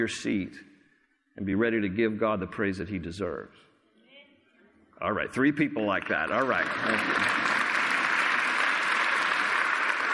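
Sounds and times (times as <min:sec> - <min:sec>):
speech: 0:00.0 - 0:00.7, 0:01.4 - 0:03.7, 0:05.0 - 0:07.3
audience clapping: 0:05.8 - 0:10.1.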